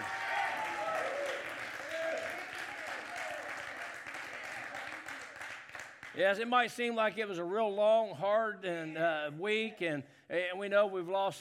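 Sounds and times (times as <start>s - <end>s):
audience clapping hands in praise: 0.0s - 6.4s
speech: 6.2s - 11.3s.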